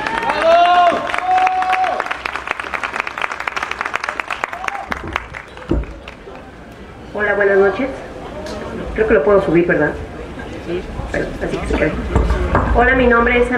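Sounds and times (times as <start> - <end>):
audience applause welcoming a speaker at an evening talk event: 0.0 - 6.6
speech: 7.4 - 8.0, 9.0 - 10.1, 10.7 - 13.5.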